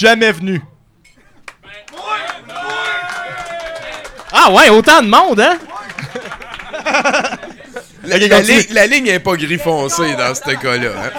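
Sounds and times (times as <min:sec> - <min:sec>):
speech: 0:00.0 - 0:00.7, 0:04.4 - 0:05.7, 0:06.8 - 0:07.4, 0:08.0 - 0:11.1
room full of people clapping: 0:01.4 - 0:07.6
excited shouts and cheering voices: 0:01.6 - 0:06.4
laughter: 0:05.3 - 0:09.0, 0:09.7 - 0:11.1.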